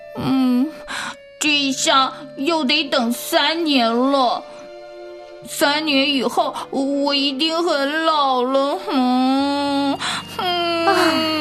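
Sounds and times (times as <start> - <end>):
speech: 1.5 - 4.6, 5.4 - 11.3
boy crying: 8.7 - 11.3.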